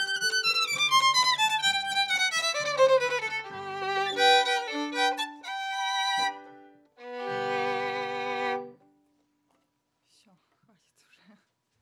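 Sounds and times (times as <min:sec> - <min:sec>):
viola: 0:00.0 - 0:09.0.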